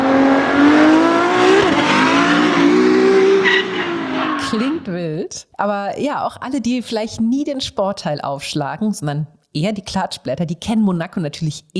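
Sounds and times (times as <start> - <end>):
Formula 1 race cars revving: 0.0 - 4.9
tire squeals: 0.0 - 4.9
speech: 5.6 - 11.7.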